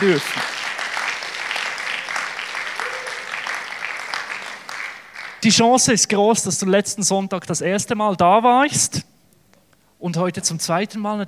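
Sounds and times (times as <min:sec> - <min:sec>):
speech: 0:00.0 - 0:00.4, 0:05.4 - 0:09.1, 0:10.0 - 0:11.2
audience applause: 0:00.0 - 0:05.4.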